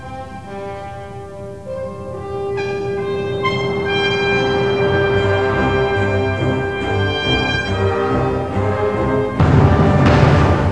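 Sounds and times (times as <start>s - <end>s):
fanfare: 0.1s - 10.7s.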